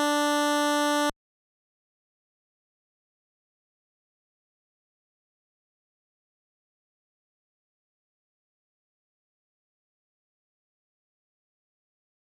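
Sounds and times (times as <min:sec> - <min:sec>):
chiptune music: 0:00.0 - 0:01.1.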